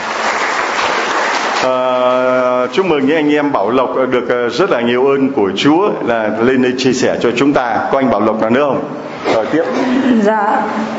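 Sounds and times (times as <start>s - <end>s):
church congregation applauding: 0.0s - 2.2s
speech: 1.6s - 10.9s.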